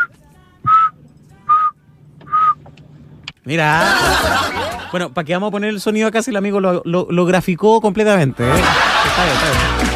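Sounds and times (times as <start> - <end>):
person whistling imitation of forest birdsong: 0.0 - 2.7
speech: 3.4 - 9.9
laughter: 3.6 - 5.1, 8.3 - 9.9.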